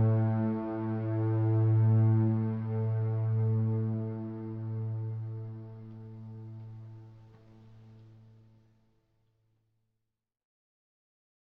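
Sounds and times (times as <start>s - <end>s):
ambient music: 0.0s - 8.0s.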